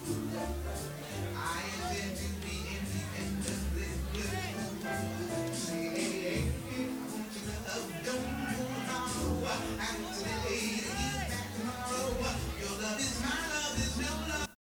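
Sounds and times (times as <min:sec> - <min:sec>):
crowd leaving: 0:00.0 - 0:14.6.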